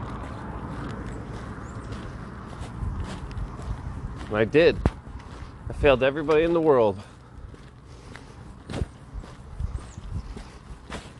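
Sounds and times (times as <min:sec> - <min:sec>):
soft scuffing footsteps of someone walking a route: 0:00.0 - 0:11.1
speech: 0:04.3 - 0:04.9, 0:05.7 - 0:07.1.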